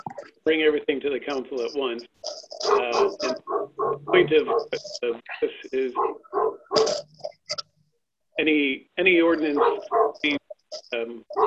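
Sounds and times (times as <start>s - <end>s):
speech: 0.5s - 6.6s, 8.4s - 11.4s
pet dog barking during a council meeting: 2.6s - 4.9s, 6.0s - 7.0s, 9.5s - 10.4s.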